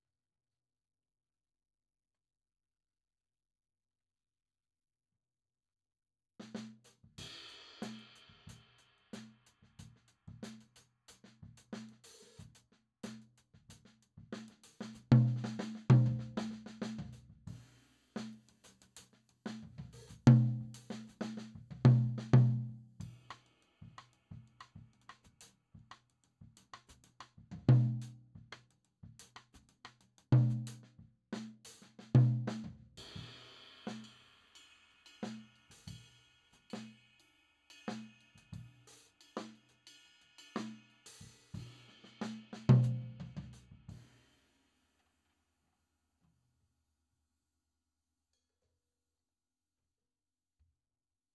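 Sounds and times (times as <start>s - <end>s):
tom drum: 6.5s - 34.2s, 40.6s - 44.2s.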